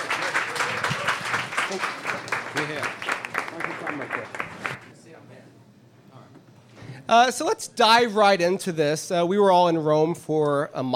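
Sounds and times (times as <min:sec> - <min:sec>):
audience applause: 0:00.0 - 0:04.9
speech: 0:01.7 - 0:02.0, 0:02.6 - 0:03.0, 0:07.1 - 0:10.9.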